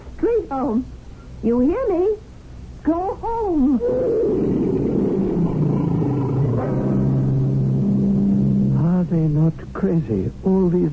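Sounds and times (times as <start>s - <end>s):
speech: 0.5s - 4.8s, 9.1s - 10.9s
tiger growling: 3.8s - 8.7s.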